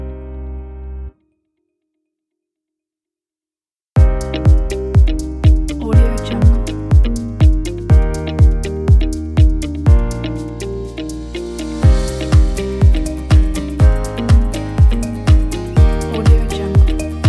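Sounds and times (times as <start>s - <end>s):
emotional music: 4.2s - 17.2s.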